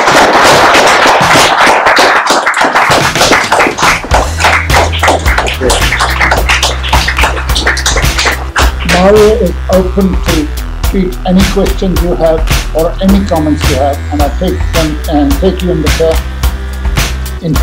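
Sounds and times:
audience applause: 0.0 - 8.9
speech: 9.0 - 16.3, 17.4 - 17.6.

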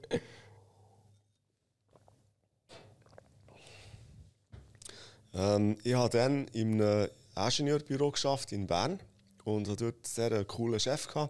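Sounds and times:
speech: 0.1 - 0.4, 5.4 - 11.2
swallowing: 1.9 - 3.6
sipping and slurping a drink: 1.9 - 3.9
soft breaths: 3.5 - 5.4.

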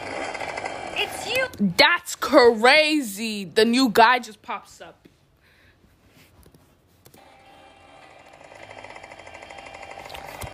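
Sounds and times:
small bike engine approaching: 0.0 - 1.5, 7.2 - 10.5
speech: 1.0 - 5.1.

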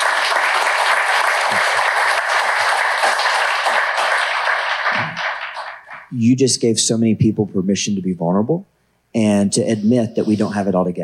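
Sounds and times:
audience applause: 0.0 - 6.1
speech: 6.1 - 11.0.

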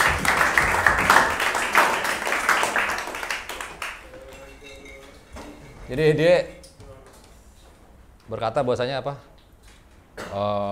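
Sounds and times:
applause: 0.0 - 4.4
speech: 5.9 - 6.6, 8.3 - 9.3, 10.3 - 10.7.

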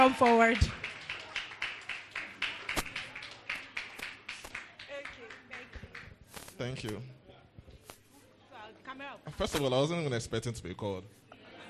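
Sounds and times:
speech: 0.0 - 0.8, 6.6 - 7.2, 9.0 - 11.2
audience clapping: 0.0 - 6.9.

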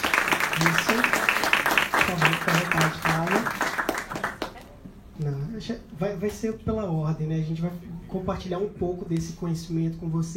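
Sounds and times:
audience clapping: 0.0 - 4.8
speech: 5.6 - 10.3.

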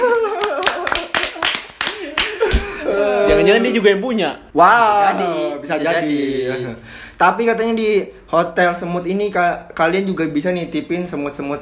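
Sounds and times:
audience clapping: 0.0 - 2.7
laughter: 0.0 - 3.8
speech: 3.4 - 11.6.

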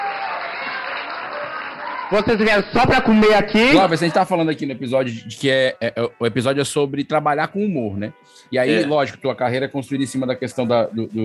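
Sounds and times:
audience applause: 0.0 - 3.4
speech: 2.1 - 11.2.

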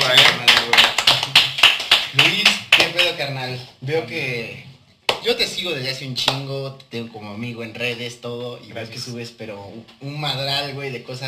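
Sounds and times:
applause for a guest: 0.0 - 3.2
speech: 3.2 - 11.2.

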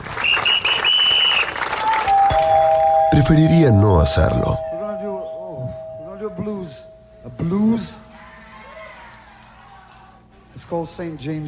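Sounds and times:
passengers applauding plane landing: 0.0 - 2.8
high whistle-like tone: 2.1 - 8.4
low steady tones: 2.1 - 10.3
speech: 3.2 - 4.7, 10.7 - 11.4.

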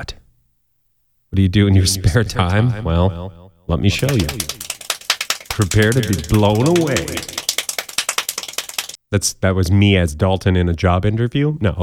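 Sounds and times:
speech: 0.0 - 0.2, 1.4 - 4.6, 5.6 - 7.4, 9.1 - 11.8
rapid speed clapping of hands: 2.5 - 2.7, 3.9 - 9.0.

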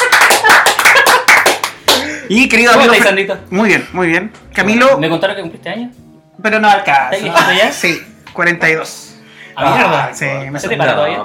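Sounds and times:
handful of people clapping: 0.0 - 3.0
speech: 2.3 - 9.0, 9.6 - 11.2.

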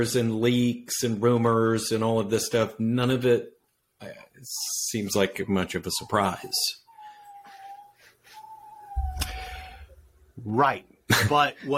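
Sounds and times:
speech: 0.0 - 6.8, 10.4 - 11.7
dog whining: 5.3 - 10.1.

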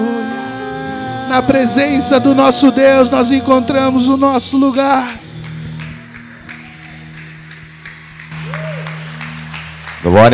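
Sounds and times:
speech: 1.3 - 5.2, 10.0 - 10.3
audience applauding: 4.1 - 10.3.

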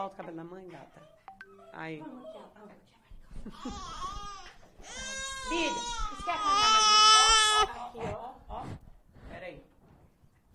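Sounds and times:
speech: 0.0 - 6.8
small child crying: 3.6 - 7.7.

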